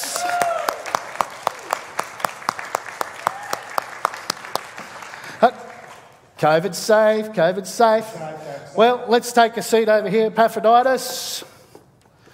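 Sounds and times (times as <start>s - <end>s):
people clapping for a guest introduced on a show: 0.0s - 6.4s
speech: 5.4s - 5.6s, 6.4s - 11.5s.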